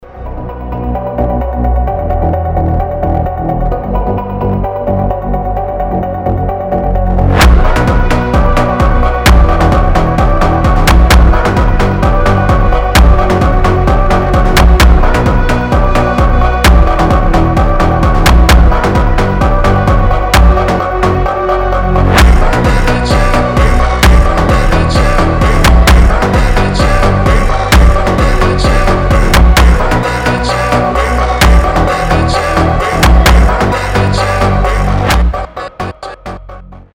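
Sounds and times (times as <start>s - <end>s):
funk music: 0.2s - 36.6s.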